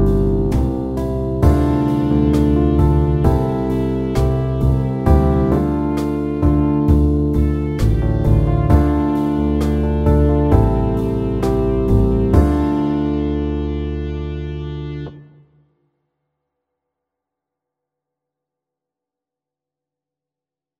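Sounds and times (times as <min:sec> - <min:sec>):
medium pop ballad: 0:00.0 - 0:15.2.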